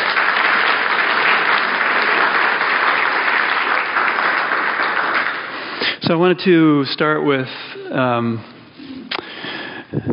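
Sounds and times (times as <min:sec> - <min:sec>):
round of applause: 0:00.0 - 0:06.0
speech: 0:06.1 - 0:08.5.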